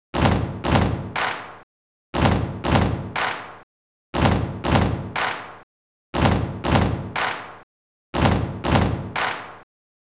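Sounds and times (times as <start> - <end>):
stomping: 0.2 - 1.6, 2.2 - 3.6, 4.2 - 5.6, 6.2 - 7.6, 8.2 - 9.6
clapping: 1.2 - 1.6, 3.2 - 3.6, 5.2 - 5.6, 7.2 - 7.6, 9.2 - 9.6.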